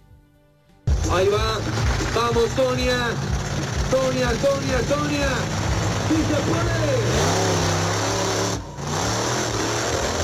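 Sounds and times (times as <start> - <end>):
car engine revving during stunt: 0.9 - 10.2
speech: 1.1 - 3.3, 3.9 - 7.2.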